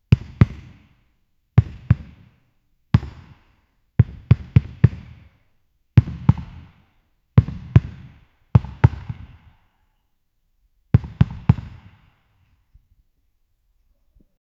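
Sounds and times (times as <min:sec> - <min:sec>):
basketball bouncing: 0:00.1 - 0:01.0, 0:01.6 - 0:02.4, 0:03.0 - 0:05.4, 0:06.0 - 0:06.8, 0:07.4 - 0:09.6, 0:11.0 - 0:12.1.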